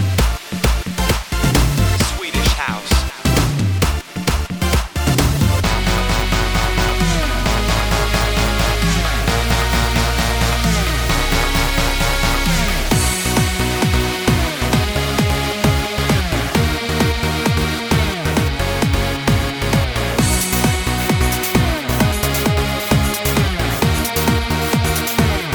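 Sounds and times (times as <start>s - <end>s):
Swedish house music: 0.0s - 25.5s.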